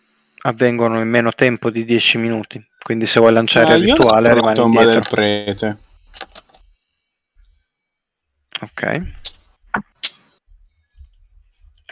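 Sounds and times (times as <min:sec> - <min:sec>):
speech: 0:00.4 - 0:06.3, 0:08.6 - 0:09.9
typing on a computer keyboard: 0:10.8 - 0:11.2.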